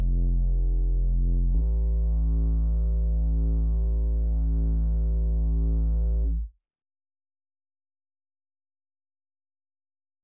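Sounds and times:
sub bass: 0.0 - 6.5.

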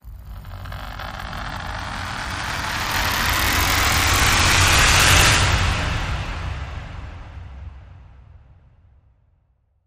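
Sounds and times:
oddball running rise: 0.4 - 5.6.

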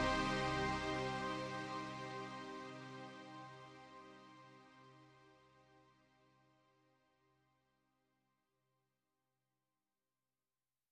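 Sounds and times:
minor chord: 0.0 - 3.5.

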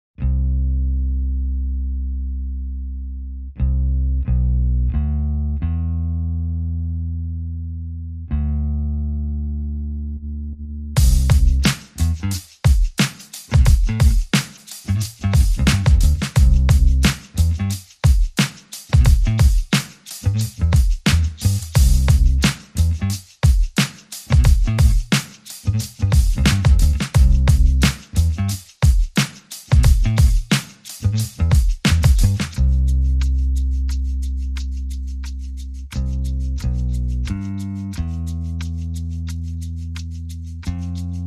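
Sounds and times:
bass: 0.0 - 12.7, 13.5 - 18.0, 18.9 - 23.4, 24.2 - 28.8, 29.7 - 41.2
drums: 11.0 - 32.7.

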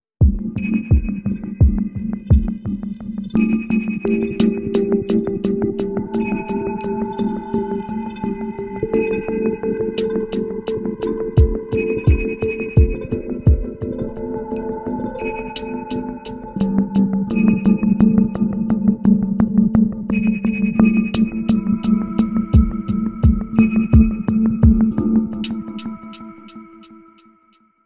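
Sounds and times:
ambient hush music: 0.2 - 27.6.

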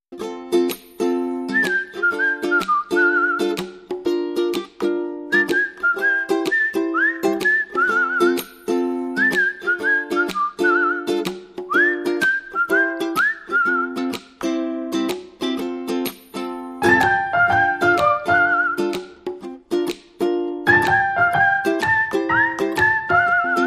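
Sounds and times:
ukulele: 0.1 - 23.6
percussion: 0.5 - 5.8, 7.3 - 12.2, 14.0 - 23.6
melody: 16.8 - 18.8, 20.7 - 23.6.

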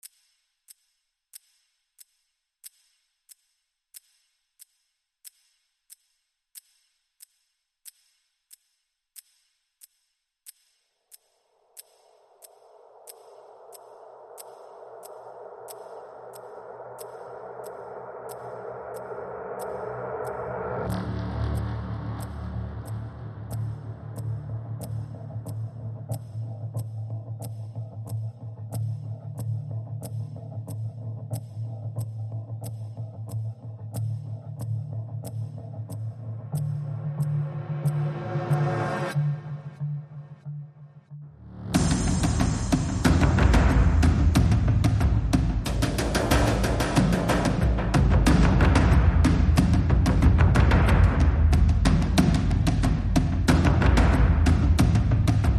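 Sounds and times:
synths: 10.5 - 55.5
drums: 41.8 - 55.5.

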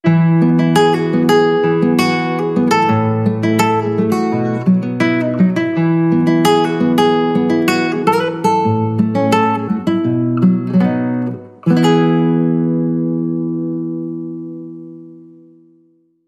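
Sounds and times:
solo guitar: 0.0 - 16.2.

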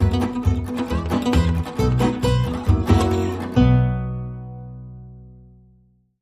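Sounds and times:
fast blues swing music: 0.0 - 4.3.

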